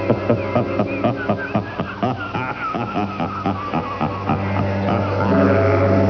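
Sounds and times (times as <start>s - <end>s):
person laughing: 0.0s - 6.0s.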